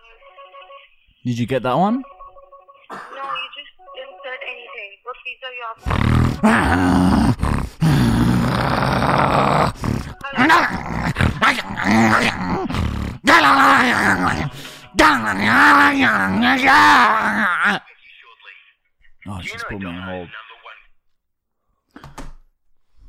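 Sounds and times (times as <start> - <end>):
speech: 1.2 - 2.1, 6.4 - 7.1, 15.4 - 17.8, 19.4 - 20.4
person imitating a dog: 5.8 - 17.8.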